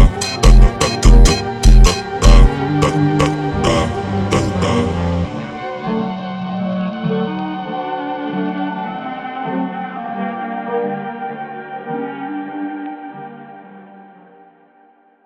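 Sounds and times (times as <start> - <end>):
funk music: 0.0 - 6.0.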